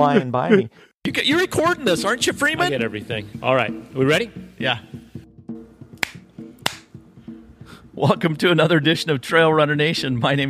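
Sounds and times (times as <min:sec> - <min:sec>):
speech: 0:00.0 - 0:05.0, 0:08.0 - 0:10.4
hand claps marking the start of a recording take: 0:06.0 - 0:06.9.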